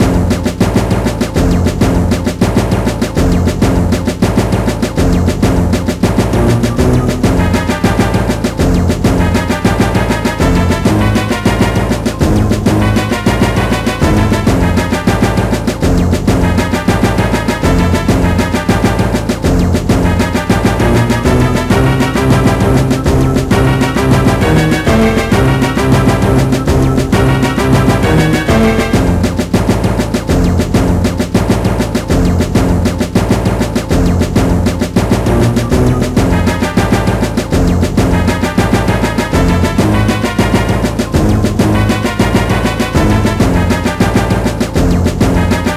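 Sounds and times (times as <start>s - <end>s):
mini-boss battle game music: 0.0s - 45.7s.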